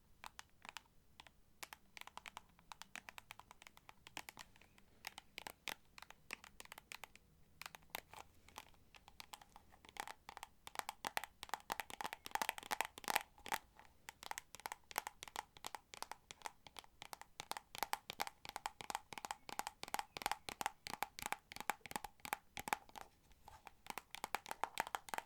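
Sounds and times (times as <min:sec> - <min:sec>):
rapid sharp tapping clicks: 0:00.2 - 0:23.1, 0:23.8 - 0:25.2.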